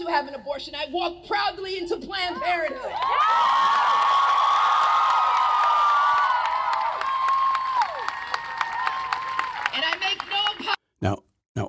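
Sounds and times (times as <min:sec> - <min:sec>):
speech: 0:00.1 - 0:03.8, 0:11.0 - 0:11.2
large crowd cheering and whooping: 0:02.9 - 0:10.8
scattered clapping: 0:05.1 - 0:10.8.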